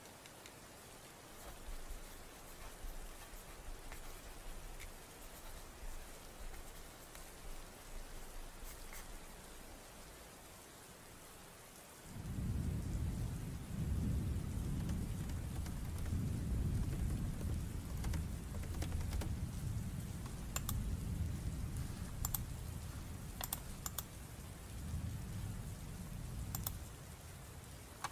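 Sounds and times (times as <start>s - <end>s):
rain hissing: 0.0s - 28.1s
heavy low rumble: 12.2s - 23.4s.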